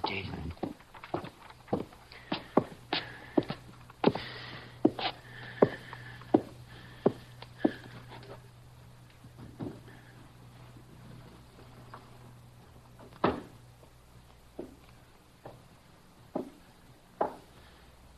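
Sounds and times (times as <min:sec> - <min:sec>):
footsteps walking down stairs: 0:00.0 - 0:18.1.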